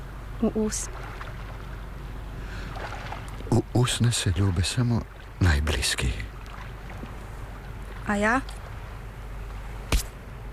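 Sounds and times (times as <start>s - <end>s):
speech: 0.4s - 1.2s, 3.5s - 6.3s, 8.1s - 8.6s
slap in the face: 9.9s - 10.2s.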